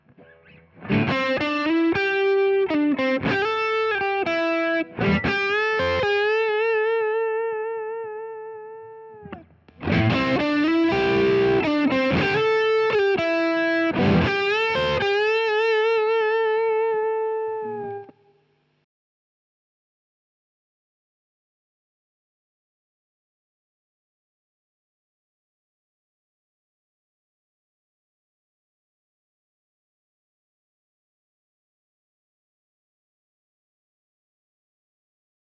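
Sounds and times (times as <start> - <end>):
electric guitar through a JHS Prestige boost and Marshall amplifier: 0.1 - 18.2.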